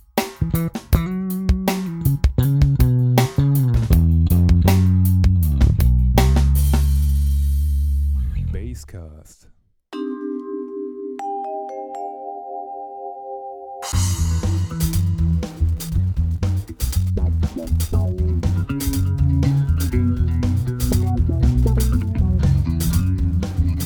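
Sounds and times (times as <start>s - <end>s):
bass music: 0.3s - 8.8s, 13.9s - 23.8s.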